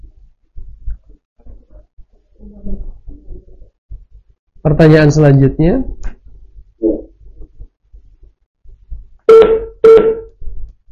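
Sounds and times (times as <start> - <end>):
speech: 2.4 - 2.9, 4.6 - 6.0
quiet phone line noise: 9.3 - 10.3
phone disconnect tone beeps from a dropped call: 9.3 - 10.4.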